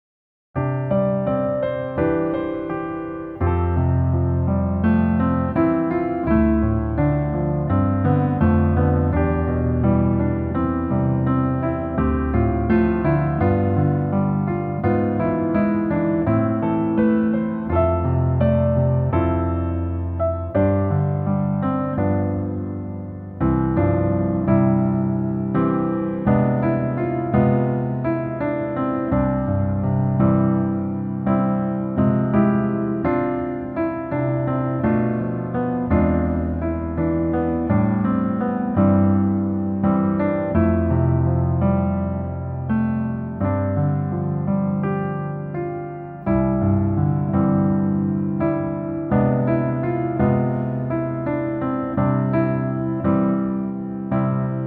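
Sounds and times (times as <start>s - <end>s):
piano music: 0.6s - 54.6s.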